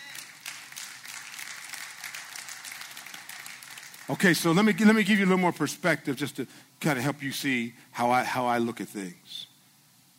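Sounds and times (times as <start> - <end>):
small group of people clapping: 0.0 - 4.7
speech: 4.1 - 9.5.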